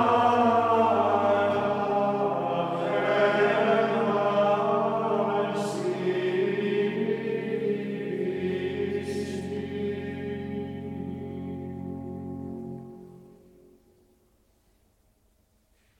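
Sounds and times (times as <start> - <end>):
gregorian chant: 0.0 - 11.9.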